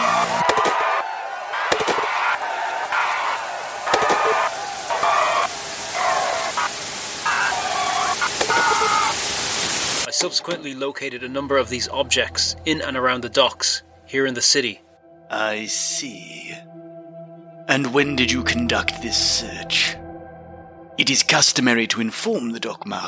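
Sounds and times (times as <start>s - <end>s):
round of applause: 0.1s - 9.1s
speech: 10.4s - 16.7s, 17.7s - 20.0s, 21.0s - 23.0s.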